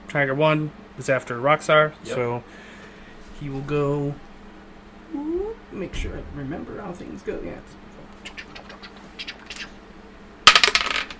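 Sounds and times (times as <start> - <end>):
speech: 0.1 - 2.7, 3.4 - 4.3, 5.1 - 7.9
dice rolling on a hard table: 10.5 - 11.1.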